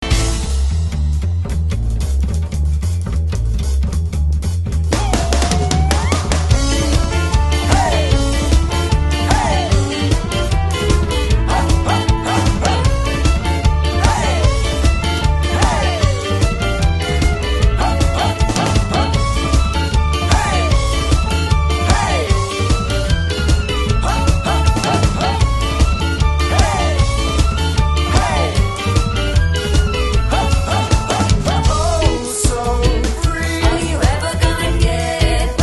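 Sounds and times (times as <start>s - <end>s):
swing music: 0.0s - 35.6s.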